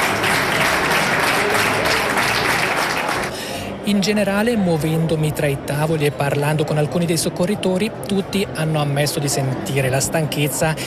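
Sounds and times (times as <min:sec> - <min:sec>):
warm welcoming crowd applause: 0:00.0 - 0:03.5
speech: 0:03.9 - 0:10.8.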